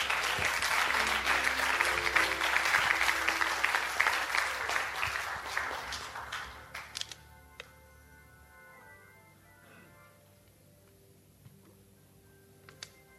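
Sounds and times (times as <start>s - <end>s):
audience clapping hands: 0.0s - 7.1s.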